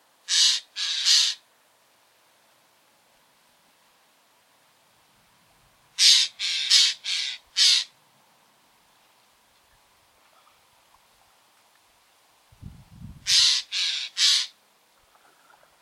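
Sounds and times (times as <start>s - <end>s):
Eurasian jay Garrulus glandarius calling in a garden: 0.3s - 1.4s, 6.0s - 7.9s, 13.3s - 14.6s.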